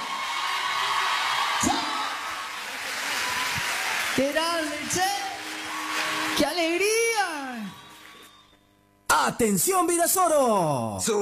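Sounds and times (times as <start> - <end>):
audience applause: 0.0 - 8.5
speech: 4.2 - 5.2, 6.4 - 7.1, 9.2 - 11.2.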